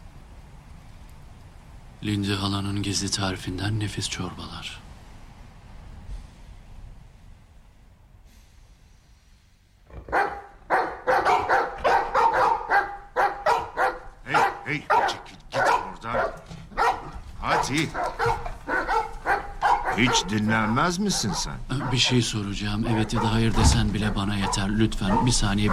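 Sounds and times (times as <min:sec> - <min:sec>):
speech: 0:02.0 - 0:04.9, 0:17.7 - 0:18.0, 0:20.0 - 0:25.7
dogs barking: 0:09.9 - 0:25.7.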